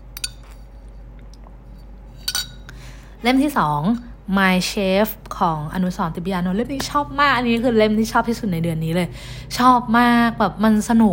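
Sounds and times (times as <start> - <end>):
glass clinking: 0.2 - 2.7
speech: 3.2 - 11.1.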